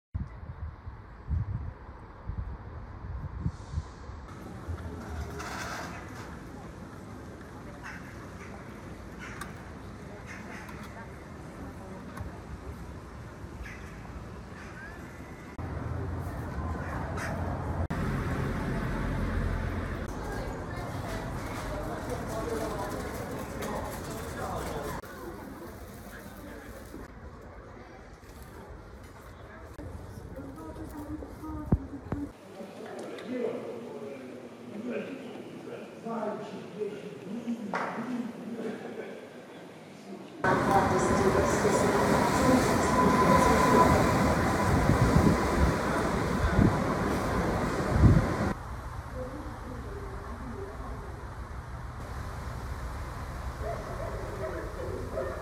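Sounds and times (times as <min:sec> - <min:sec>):
train: 0:00.2 - 0:32.4, 0:39.4 - 0:55.4
street noise: 0:00.2 - 0:55.4
bus: 0:02.0 - 0:32.4, 0:40.4 - 0:55.4
market noise: 0:04.3 - 0:37.4, 0:40.4 - 0:48.6.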